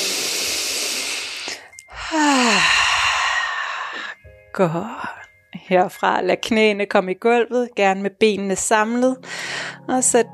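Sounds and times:
exhale with voiced sigh during a yoga class: 0:00.0 - 0:04.2, 0:09.2 - 0:09.8
deep inhale during a yoga class: 0:00.0 - 0:04.3, 0:09.2 - 0:09.9
speech: 0:04.6 - 0:05.1, 0:05.7 - 0:10.3.

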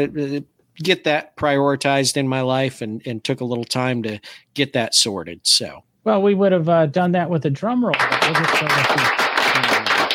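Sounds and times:
speech: 0:00.0 - 0:09.8
applause sound effect: 0:07.9 - 0:10.1.

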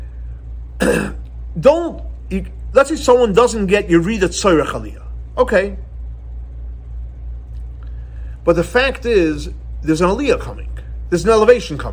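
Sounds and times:
person imitating nervous throat clearing: 0:00.8 - 0:01.3
speech: 0:00.8 - 0:05.9, 0:08.4 - 0:11.9.

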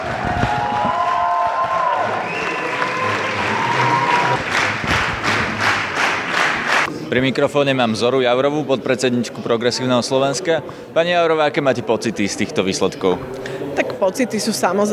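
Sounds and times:
cheers and whistles: 0:00.0 - 0:04.4
supporters clapping: 0:00.0 - 0:06.9
speech: 0:07.1 - 0:14.9.

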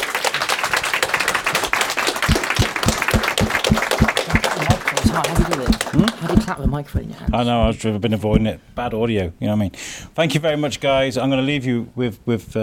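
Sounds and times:
audience applause: 0:00.0 - 0:06.6
speech: 0:05.5 - 0:12.6.

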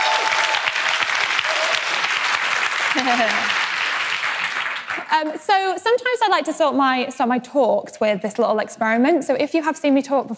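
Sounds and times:
sustained applause from a large audience: 0:00.0 - 0:05.2
laughter: 0:02.9 - 0:03.8
speech: 0:03.0 - 0:03.6, 0:05.1 - 0:10.3.

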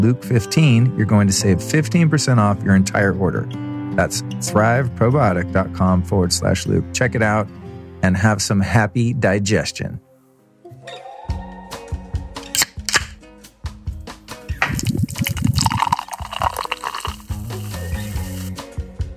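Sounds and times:
speech: 0:00.0 - 0:10.1
cold soda can being cracked open: 0:12.6 - 0:13.2, 0:14.6 - 0:18.5
fizzing liquid pouring: 0:14.6 - 0:18.6.

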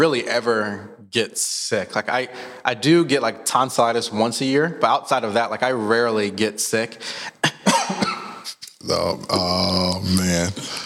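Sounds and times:
speech: 0:00.0 - 0:08.0, 0:08.8 - 0:10.8
man coughing: 0:07.4 - 0:08.6.

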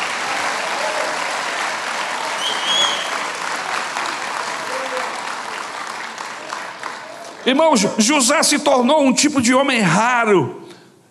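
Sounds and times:
audience applauding: 0:00.0 - 0:07.9
speech: 0:07.4 - 0:10.6.

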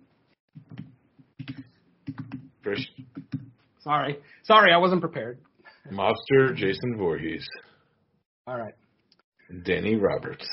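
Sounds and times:
computer keyboard typing: 0:00.6 - 0:03.6
speech: 0:02.7 - 0:07.7, 0:08.5 - 0:08.8, 0:09.5 - 0:10.5.

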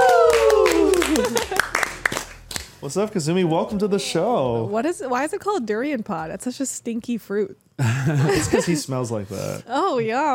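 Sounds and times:
cheering whoop: 0:00.0 - 0:01.5
audience clapping to welcome a show guest: 0:00.0 - 0:02.8
laughter: 0:00.8 - 0:01.9, 0:07.8 - 0:09.0
speech: 0:02.8 - 0:10.3.

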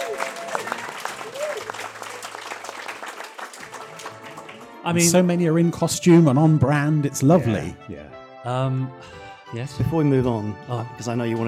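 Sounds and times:
audience round of applause: 0:00.0 - 0:05.2
speech: 0:04.8 - 0:11.4.

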